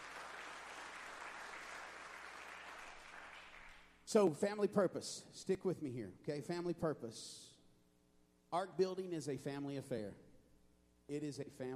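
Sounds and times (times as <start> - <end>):
audience clapping: 0.0 - 4.0
speech: 4.1 - 7.5, 8.5 - 10.2, 11.1 - 11.7.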